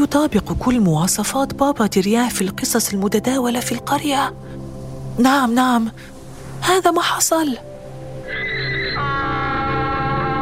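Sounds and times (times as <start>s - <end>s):
speech: 0.0s - 4.6s, 5.2s - 7.7s
donkey braying: 8.2s - 9.8s.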